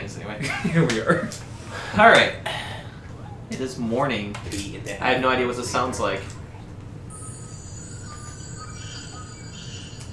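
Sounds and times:
speech: 0.3s - 2.6s, 3.5s - 6.4s
birds chirping outside in the morning: 7.9s - 10.1s.

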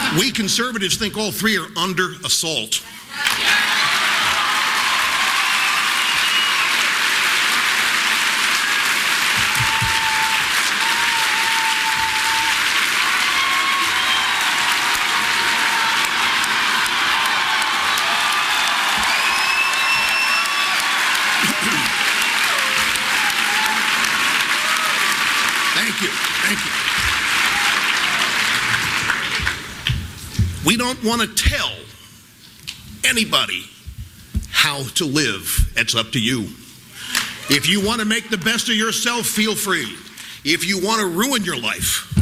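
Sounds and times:
speech: 0.1s - 3.6s, 31.0s - 31.9s, 33.0s - 33.7s, 34.6s - 36.6s, 37.5s - 42.1s
whoops and cheers: 3.2s - 7.0s, 8.5s - 25.9s, 27.3s - 28.6s
audience applause: 3.2s - 29.9s.

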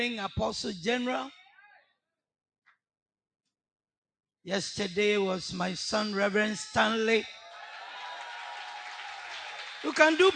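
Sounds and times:
speech: 0.0s - 1.4s, 4.4s - 7.4s, 9.8s - 10.3s
audience applause: 7.5s - 10.3s.

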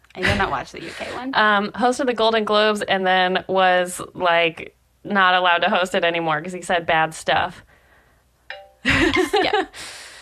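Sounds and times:
speech: 0.2s - 7.7s, 8.8s - 10.0s
phone notification chime: 8.5s - 9.3s.

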